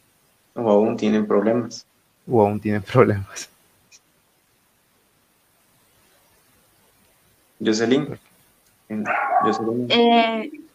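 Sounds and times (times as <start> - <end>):
speech: 0.6 - 3.5, 7.6 - 8.3, 8.9 - 10.6
dog barking: 8.9 - 9.8
dog whining: 9.0 - 9.8.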